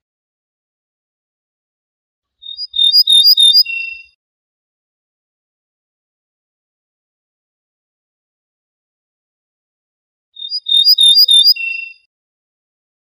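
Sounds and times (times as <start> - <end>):
ortolan bunting singing: 2.4 - 4.2, 10.4 - 12.1.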